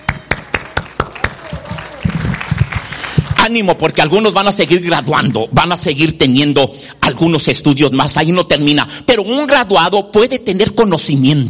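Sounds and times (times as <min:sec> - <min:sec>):
applause for graduates: 0:00.0 - 0:04.4
speech: 0:03.4 - 0:11.4.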